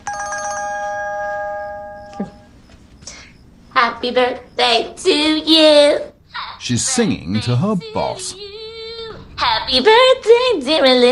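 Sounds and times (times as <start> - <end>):
mobile phone ringing with an electronic ringtone: 0.0 - 2.7
speech: 2.2 - 2.4, 4.0 - 8.5, 9.7 - 11.1.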